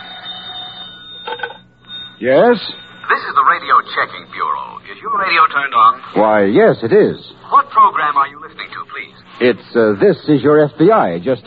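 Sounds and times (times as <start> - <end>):
telephone bell ringing: 0.0 - 6.0
speech: 2.2 - 11.4.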